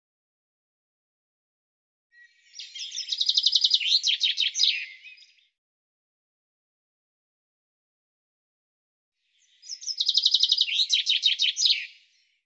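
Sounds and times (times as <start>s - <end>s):
bird song: 2.1s - 5.6s, 9.2s - 12.4s.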